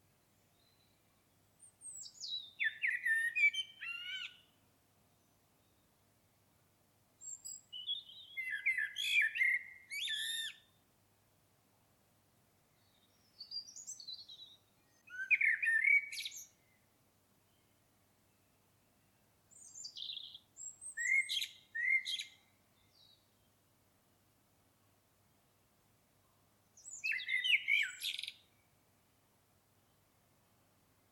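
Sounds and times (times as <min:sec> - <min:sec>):
Common blackbird singing: 0:01.7 - 0:04.5, 0:07.2 - 0:10.7, 0:12.8 - 0:16.8, 0:19.5 - 0:23.5, 0:26.8 - 0:28.6.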